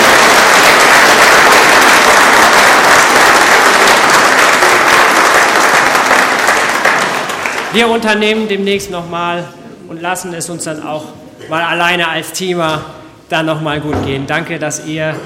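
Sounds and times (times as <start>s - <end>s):
audience applause: 0.0s - 7.8s
speech: 7.8s - 15.2s.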